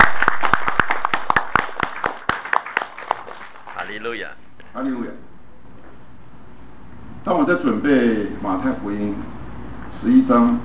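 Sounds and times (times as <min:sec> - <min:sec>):
audience clapping: 0:00.0 - 0:04.4
speech: 0:04.0 - 0:05.3, 0:07.2 - 0:09.4, 0:10.0 - 0:10.6.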